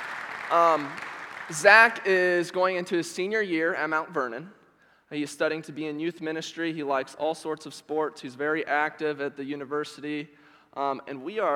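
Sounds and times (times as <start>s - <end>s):
welcome round of applause: 0.0s - 2.2s
speech: 0.5s - 11.5s.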